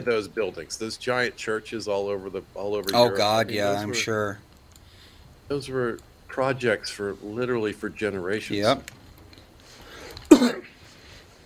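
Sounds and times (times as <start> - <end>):
speech: 0.0 - 4.5, 5.5 - 9.0, 10.4 - 10.7
person coughing: 10.3 - 10.8.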